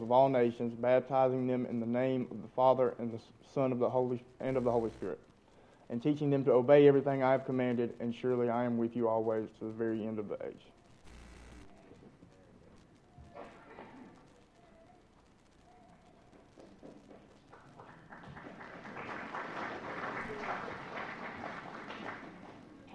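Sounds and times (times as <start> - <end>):
speech: 0.0 - 5.3, 5.9 - 10.7
audience applause: 16.3 - 22.9.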